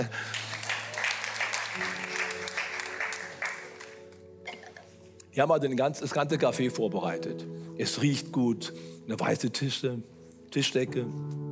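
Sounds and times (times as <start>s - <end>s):
audience applause: 0.0s - 4.2s
speech: 5.4s - 11.5s.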